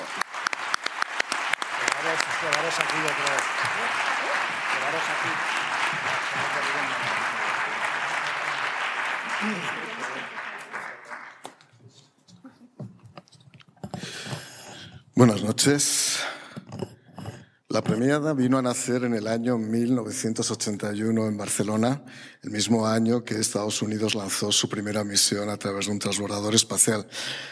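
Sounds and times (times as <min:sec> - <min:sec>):
people cheering: 0:00.0 - 0:11.5
audience applause at award ceremony: 0:00.0 - 0:11.7
speech: 0:02.4 - 0:07.8, 0:09.4 - 0:10.4, 0:15.2 - 0:16.4, 0:17.8 - 0:27.5.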